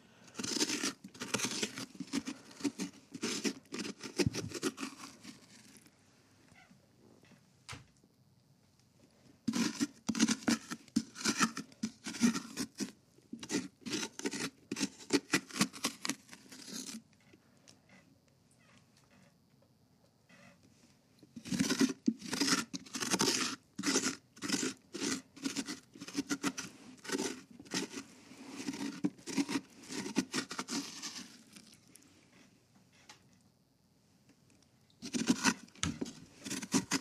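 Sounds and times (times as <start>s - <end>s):
scraping and crunching while scooping out a pumpkin during carving: 0.0s - 6.0s, 9.4s - 17.1s, 21.3s - 32.5s, 35.0s - 37.0s.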